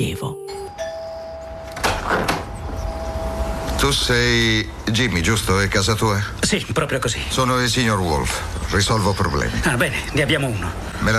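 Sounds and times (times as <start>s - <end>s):
door with handle and lock opening: 1.4s - 3.8s
door clunks: 1.6s - 2.8s
speech: 3.8s - 11.1s.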